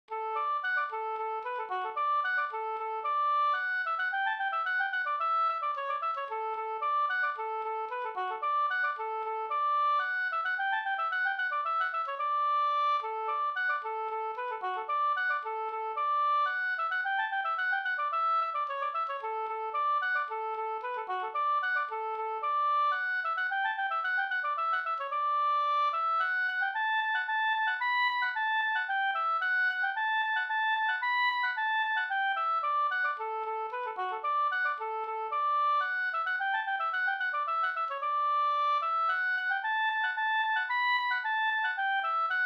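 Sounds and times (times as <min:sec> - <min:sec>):
polska folk tune: 0:00.0 - 0:42.4.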